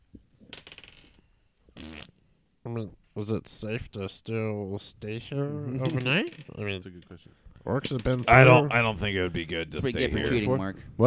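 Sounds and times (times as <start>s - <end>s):
dice rolling across a hard surface: 0.5s - 1.2s, 5.8s - 6.8s
speech: 2.6s - 11.0s.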